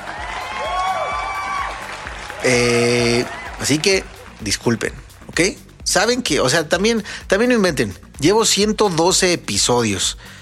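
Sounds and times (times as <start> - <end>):
applause: 0.0 - 5.3
speech: 2.4 - 10.4.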